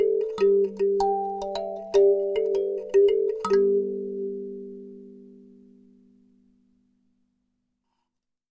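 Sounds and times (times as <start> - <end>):
Box Penta G kalimba: 0.0 - 6.3.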